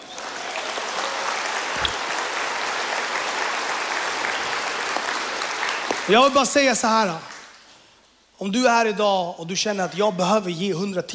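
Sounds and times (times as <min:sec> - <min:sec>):
audience applause: 0:00.0 - 0:06.1
speech: 0:06.1 - 0:07.3, 0:08.4 - 0:11.1.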